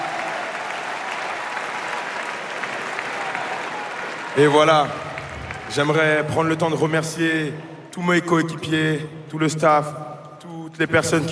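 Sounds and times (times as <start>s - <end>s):
audience applauding the club president: 0.0s - 6.6s
speech: 4.4s - 5.1s, 5.7s - 10.1s, 10.7s - 11.2s.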